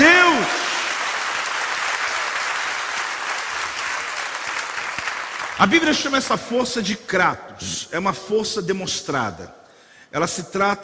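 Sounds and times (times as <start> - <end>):
audience applause: 0.0 - 6.0
speech: 5.6 - 10.8.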